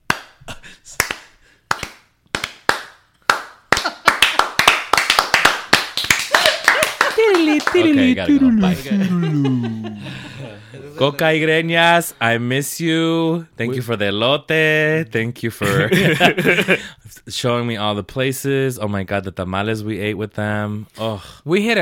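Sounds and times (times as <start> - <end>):
awkward hand clapping: 0.0 - 8.4
speech: 0.6 - 1.1, 7.6 - 21.8
people laughing: 6.2 - 11.2, 15.6 - 16.9.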